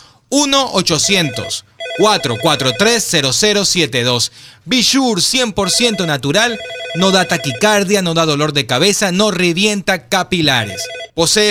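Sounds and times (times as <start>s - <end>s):
speech: 0.3s - 11.4s
warbling electronic telephone ring: 1.0s - 3.1s, 5.6s - 7.9s, 10.6s - 11.2s.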